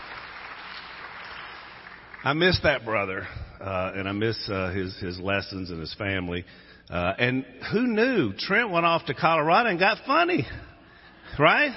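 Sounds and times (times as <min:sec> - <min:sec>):
audience applause: 0:00.0 - 0:02.6
speech: 0:02.2 - 0:10.7, 0:11.3 - 0:11.7.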